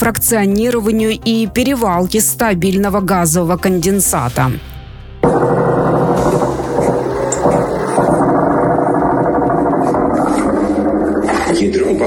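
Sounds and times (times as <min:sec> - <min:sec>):
speech: 0:00.0 - 0:04.7
drones buzzing overhead during attack: 0:05.2 - 0:12.0.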